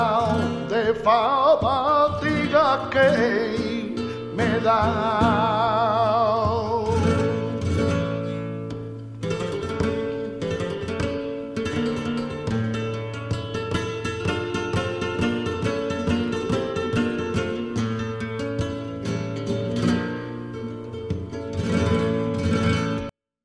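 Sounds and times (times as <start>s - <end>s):
person singing a soleá: 0.0s - 8.0s
guitar playing a soleá: 0.0s - 23.2s.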